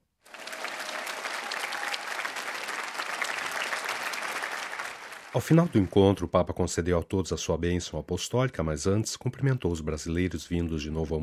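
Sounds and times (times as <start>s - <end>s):
crowd applause in a square: 0.2s - 6.2s
speech: 5.4s - 11.2s.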